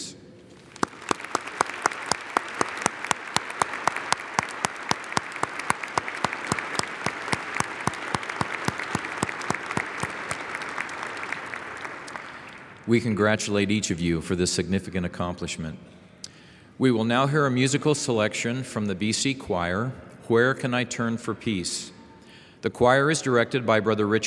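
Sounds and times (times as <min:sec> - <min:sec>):
crowd applauding: 0:00.8 - 0:12.6
speech: 0:12.9 - 0:16.0, 0:16.8 - 0:22.0, 0:22.6 - 0:24.2.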